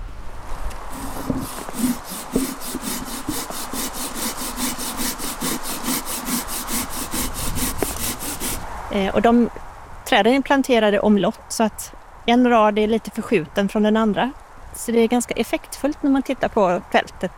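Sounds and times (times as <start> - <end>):
hand saw cutting through a branch while pruning: 0.9 - 8.6
speech: 9.0 - 17.3.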